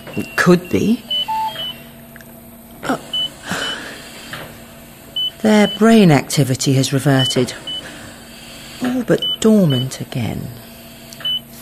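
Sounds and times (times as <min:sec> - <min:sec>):
hospital monitors beeping: 0:00.0 - 0:01.9, 0:03.1 - 0:03.3, 0:05.2 - 0:06.0, 0:07.2 - 0:07.8, 0:08.8 - 0:09.9, 0:11.2 - 0:11.4
speech: 0:00.2 - 0:01.1, 0:05.4 - 0:07.7, 0:09.0 - 0:10.6.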